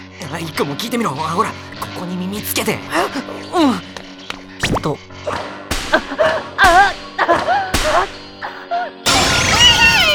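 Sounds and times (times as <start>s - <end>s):
speech: 0.3s - 3.9s, 4.8s - 6.8s
whip cracking: 4.6s - 6.9s, 7.8s - 8.2s
pained vocal cries: 6.0s - 10.1s
loud shriek: 9.1s - 10.1s.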